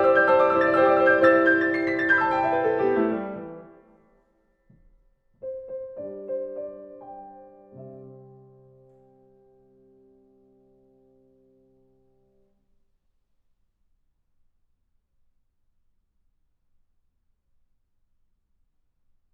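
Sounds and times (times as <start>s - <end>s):
piano piece: 0.0s - 4.1s, 5.4s - 12.5s.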